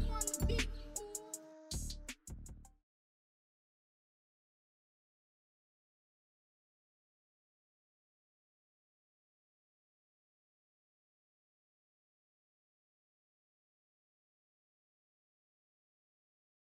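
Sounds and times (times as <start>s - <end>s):
instrumental music: 0.0s - 2.5s.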